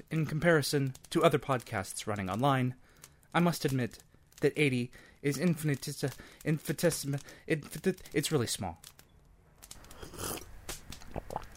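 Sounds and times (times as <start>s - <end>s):
speech: 0.1s - 8.9s
sipping decaf cappuccino: 9.8s - 11.5s.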